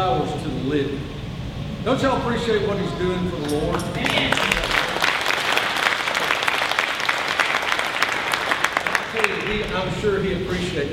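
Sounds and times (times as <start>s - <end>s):
speech: 0.0s - 1.2s, 1.8s - 4.7s, 9.5s - 10.9s
crowd applause: 4.0s - 9.9s.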